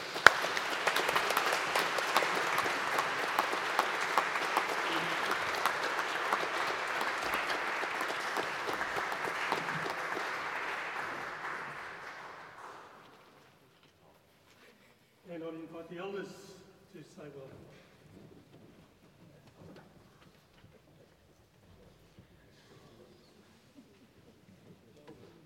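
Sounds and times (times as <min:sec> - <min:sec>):
applause: 0:00.0 - 0:13.5.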